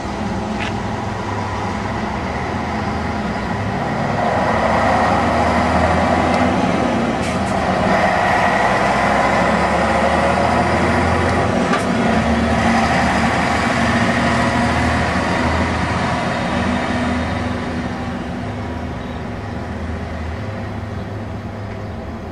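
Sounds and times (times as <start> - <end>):
Pegaso Troner 370 hp truck engine: 0.0 - 22.3.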